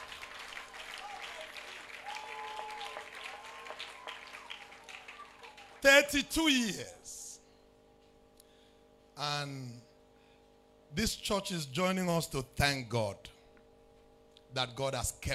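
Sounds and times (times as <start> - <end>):
church audience clapping: 0.0 - 6.3
speech: 5.8 - 7.0, 9.2 - 9.8, 11.0 - 13.4, 14.5 - 15.3.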